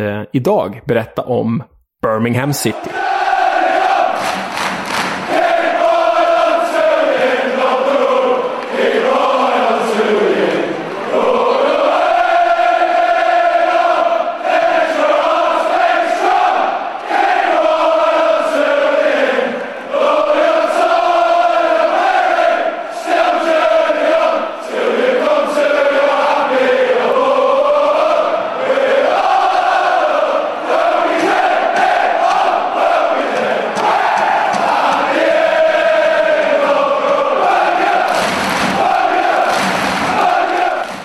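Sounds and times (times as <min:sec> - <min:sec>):
speech: 0:00.0 - 0:03.1
football supporters singing a slow club anthem: 0:02.8 - 0:41.0.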